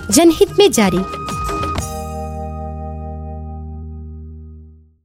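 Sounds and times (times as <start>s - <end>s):
Nagpuri jingle: 0.2s - 3.7s.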